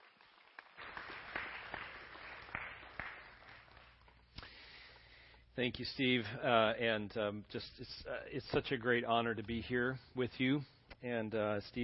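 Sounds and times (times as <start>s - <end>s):
audience applause at Northview welcoming a guest speaker: 0.0s - 4.0s
speech: 5.6s - 11.8s.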